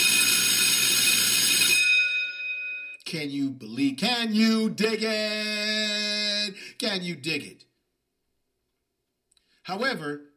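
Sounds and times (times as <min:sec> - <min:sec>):
bright bell ringing with metallic clang: 0:00.0 - 0:03.0
speech: 0:03.1 - 0:07.6, 0:09.7 - 0:10.3.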